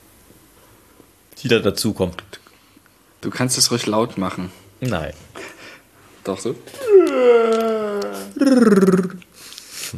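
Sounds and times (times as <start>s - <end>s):
speech: 1.4s - 2.4s, 3.2s - 5.3s, 6.3s - 7.4s, 8.4s - 9.3s
person yawning with a rolled-R growl: 6.8s - 9.2s.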